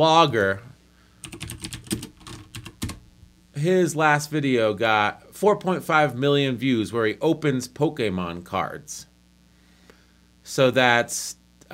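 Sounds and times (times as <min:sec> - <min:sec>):
speech: 0:00.0 - 0:00.7, 0:03.6 - 0:09.1, 0:10.5 - 0:11.7
computer keyboard typing: 0:01.2 - 0:03.0.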